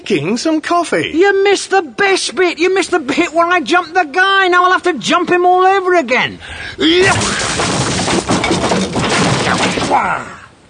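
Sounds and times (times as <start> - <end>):
speech: 0.0 - 7.8, 8.8 - 10.4
person shouting: 6.8 - 7.4
wooden chair being smashed: 7.0 - 10.2.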